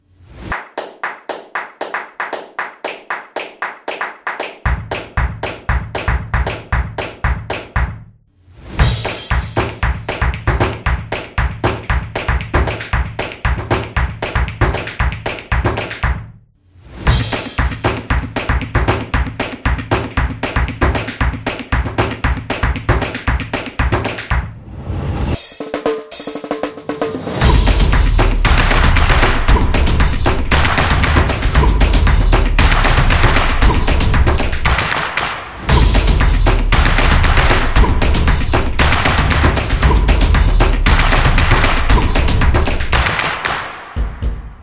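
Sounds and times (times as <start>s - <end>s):
energetic claps: 0.4s - 8.0s, 8.8s - 16.3s, 17.1s - 24.5s, 27.4s - 44.4s
energetic drums: 8.7s - 16.2s, 17.0s - 24.5s, 25.3s - 44.6s.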